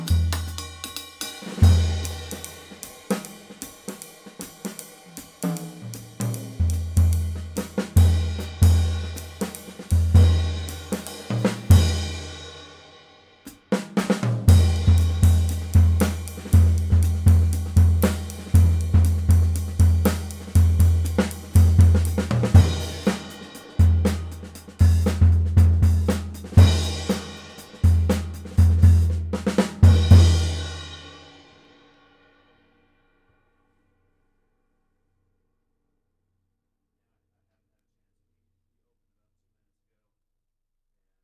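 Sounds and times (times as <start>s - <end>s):
22 Sabian hi-hat cymbal: 0.0s - 32.5s.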